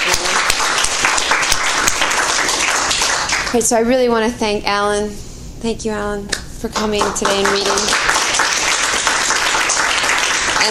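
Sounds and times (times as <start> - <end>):
applause for students: 0.0 - 3.6, 6.8 - 10.7
speech: 3.5 - 8.1.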